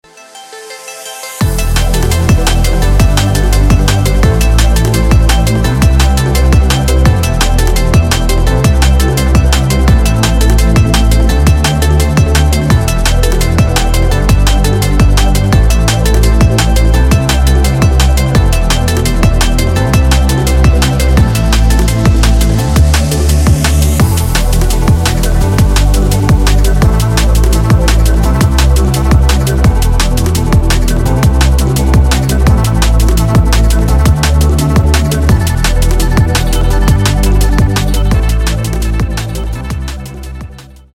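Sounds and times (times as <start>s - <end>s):
drums: 1.4s - 40.9s.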